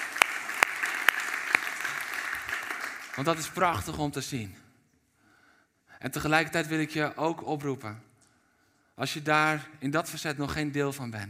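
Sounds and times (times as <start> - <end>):
audience applauding: 0.0 - 3.8
speech: 3.2 - 4.6, 6.0 - 8.1, 9.0 - 11.2.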